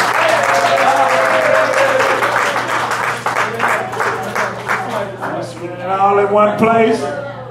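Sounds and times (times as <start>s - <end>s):
audience applause for a prize winner: 0.0s - 5.7s
speech: 6.3s - 7.2s.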